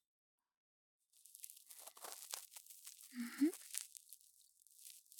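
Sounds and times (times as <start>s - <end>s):
ear cleaning sounds in the right ear: 3.2s - 3.8s.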